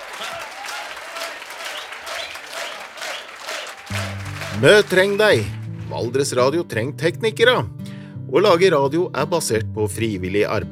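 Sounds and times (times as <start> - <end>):
audience applause for a dance band: 0.0 - 6.2
speech: 4.6 - 10.6.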